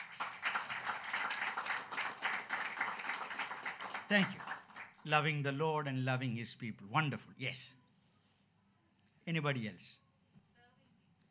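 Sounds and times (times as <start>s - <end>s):
audience clapping: 0.0s - 5.5s
speech: 4.1s - 4.4s, 5.0s - 7.8s, 9.3s - 10.0s.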